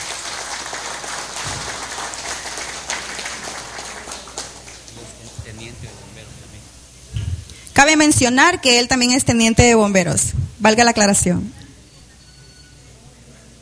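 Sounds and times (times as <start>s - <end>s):
audience applause: 0.0s - 6.2s
speech: 7.8s - 11.6s.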